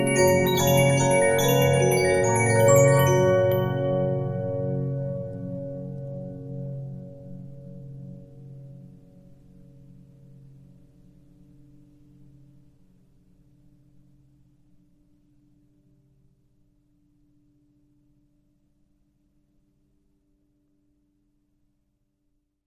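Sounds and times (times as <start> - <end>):
Regina 15-inch disc music box: 0.0 - 4.6.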